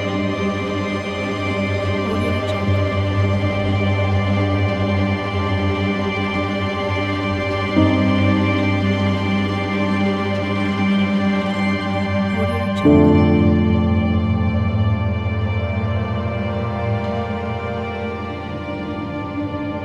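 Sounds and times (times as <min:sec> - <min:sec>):
dramatic piano: 0:00.0 - 0:19.8
dramatic strings: 0:00.0 - 0:19.8.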